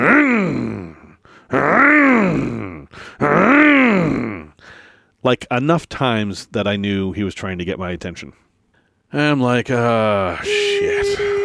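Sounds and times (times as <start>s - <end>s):
voice imitating a tractor engine revving: 0.0s - 4.5s
speech: 5.2s - 8.4s, 9.1s - 11.4s.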